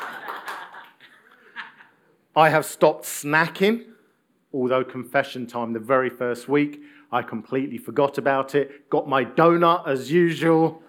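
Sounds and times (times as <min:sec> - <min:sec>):
crowd applauding: 0:00.0 - 0:01.1
laughter: 0:00.0 - 0:02.0
speech: 0:02.4 - 0:03.9, 0:04.5 - 0:10.8.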